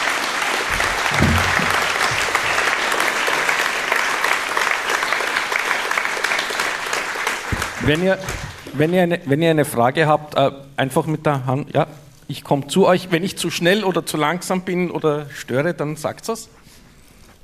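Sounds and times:
applause: 0.0s - 8.8s
speech: 7.9s - 16.6s.

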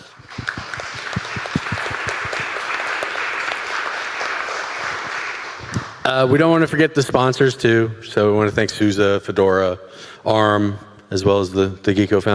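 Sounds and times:
audience applause: 0.0s - 6.0s
speech: 6.1s - 12.3s.

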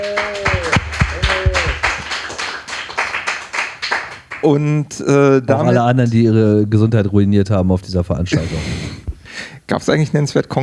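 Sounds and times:
audience applause: 0.0s - 4.5s
speech: 4.4s - 8.9s, 9.7s - 10.6s.

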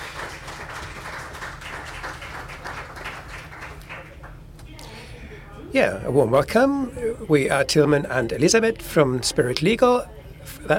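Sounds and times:
audience applause: 0.0s - 4.4s
speech: 5.7s - 10.7s.

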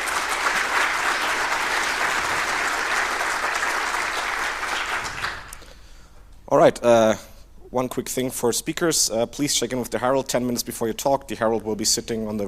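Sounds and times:
audience applause: 0.0s - 5.6s
speech: 6.6s - 12.4s.

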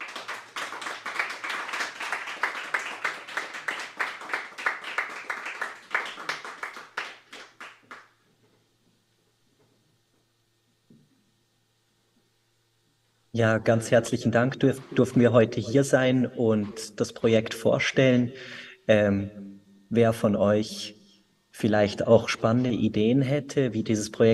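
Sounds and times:
audience applause: 0.0s - 8.1s
speech: 13.4s - 21.0s, 21.6s - 24.3s.

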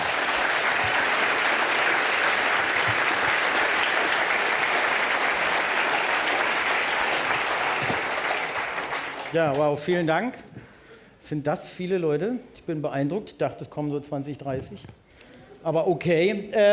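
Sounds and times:
audience applause: 0.0s - 10.1s
speech: 9.3s - 10.5s, 11.3s - 15.0s, 15.6s - 16.7s.

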